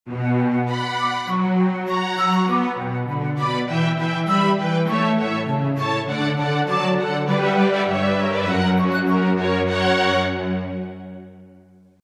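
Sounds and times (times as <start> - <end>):
instrumental music: 0.1 - 12.0.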